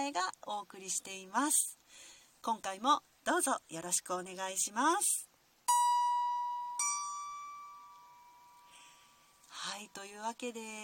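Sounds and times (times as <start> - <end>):
speech: 0.0 - 5.8, 9.8 - 10.8
two clear bright plucked notes on a lyre: 5.7 - 9.0.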